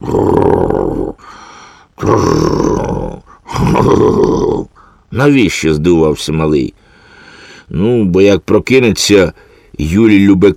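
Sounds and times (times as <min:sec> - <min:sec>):
person imitating loud exaggerated snoring: 0:00.0 - 0:01.4, 0:02.0 - 0:04.9
speech: 0:02.2 - 0:02.9, 0:05.2 - 0:06.8, 0:07.7 - 0:10.5.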